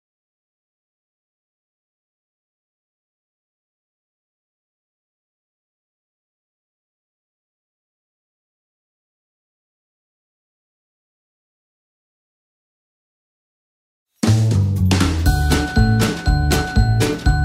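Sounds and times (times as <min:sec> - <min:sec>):
Christmas song: 0:14.2 - 0:17.4.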